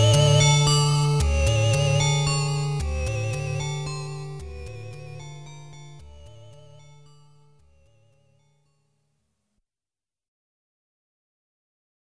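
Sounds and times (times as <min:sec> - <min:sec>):
background music: 0:00.0 - 0:07.6.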